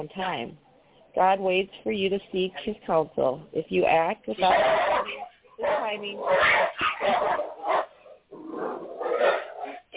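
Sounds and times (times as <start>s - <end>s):
speech: 0.0s - 5.2s, 5.8s - 7.5s
two wolves, a big one and a little one, howling: 4.3s - 9.9s.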